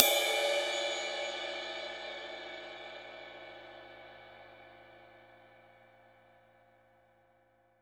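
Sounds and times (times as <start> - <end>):
dry ride cymbal: 0.0 - 5.1.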